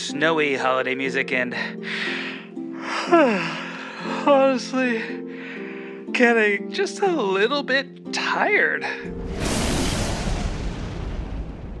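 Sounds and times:
speech: 0:00.1 - 0:02.1, 0:03.1 - 0:05.3, 0:06.2 - 0:09.2
lightning strike thunder sound effect: 0:09.1 - 0:11.7.

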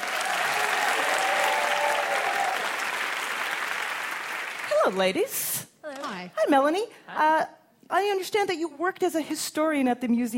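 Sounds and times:
audience applause: 0:00.0 - 0:04.9
speech: 0:04.8 - 0:10.3.

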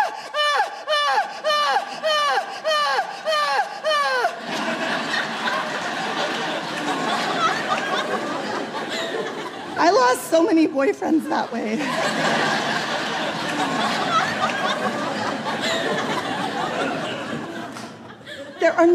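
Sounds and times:
voice imitating loud melodramatic crying: 0:00.0 - 0:04.4
audience laughter: 0:00.9 - 0:18.9
audience chatter: 0:04.4 - 0:09.9, 0:11.1 - 0:18.6
speech: 0:10.1 - 0:12.6, 0:18.6 - 0:18.9.

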